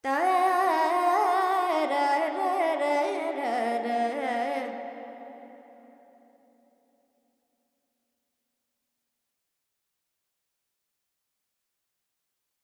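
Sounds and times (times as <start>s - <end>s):
Carnatic female vocal alaps in Dorian: 0.0s - 5.2s.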